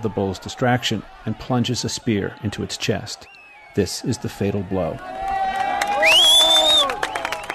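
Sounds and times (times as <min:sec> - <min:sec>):
speech: 0:00.0 - 0:05.3
crowd cheering and shouting at a bullfight: 0:00.0 - 0:07.5
shrill whistle-like tone: 0:03.2 - 0:03.8, 0:06.0 - 0:07.5.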